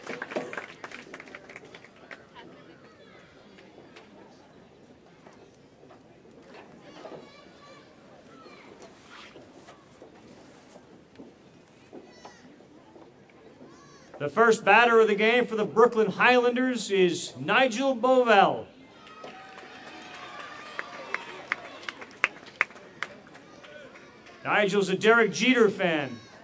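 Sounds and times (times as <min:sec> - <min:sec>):
stadium crowd applause: 0:00.0 - 0:02.4, 0:19.0 - 0:24.8
speech: 0:14.2 - 0:18.7, 0:24.6 - 0:26.2.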